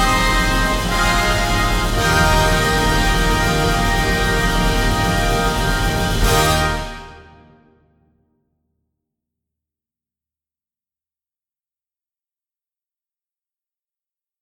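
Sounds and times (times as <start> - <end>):
triumphant fanfare: 0.0 - 7.8.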